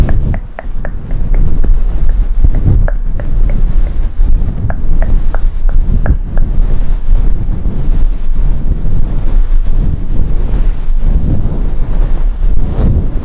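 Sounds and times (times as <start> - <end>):
short bright taps or plucks: 0.0 - 6.7
fluffy mic being scratched and rubbed: 0.0 - 13.2.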